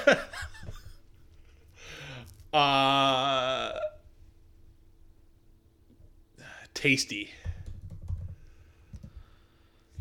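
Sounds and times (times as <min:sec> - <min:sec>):
speech: 0:00.0 - 0:00.5, 0:02.5 - 0:03.4, 0:06.8 - 0:07.4
fast typing on a computer keyboard: 0:07.5 - 0:09.1.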